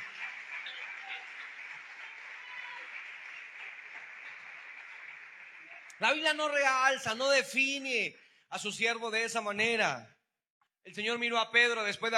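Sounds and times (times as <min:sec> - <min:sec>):
audience applause: 0:00.0 - 0:06.8
speech: 0:06.0 - 0:10.2, 0:10.8 - 0:12.1.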